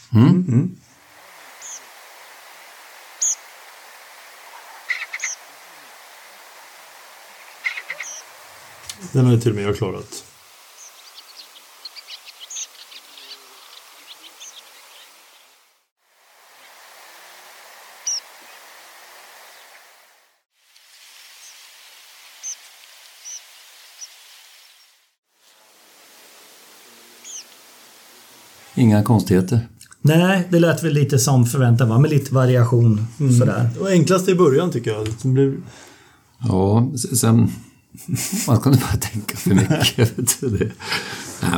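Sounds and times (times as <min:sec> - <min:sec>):
speech: 0:00.1 - 0:00.8, 0:09.2 - 0:10.3, 0:28.8 - 0:41.5
tree pipit calls, recorded: 0:01.5 - 0:01.9, 0:03.1 - 0:03.6, 0:04.4 - 0:05.6, 0:06.6 - 0:09.2, 0:10.6 - 0:15.6, 0:18.0 - 0:18.7, 0:22.4 - 0:25.0, 0:27.1 - 0:27.6
laughter: 0:38.0 - 0:41.5.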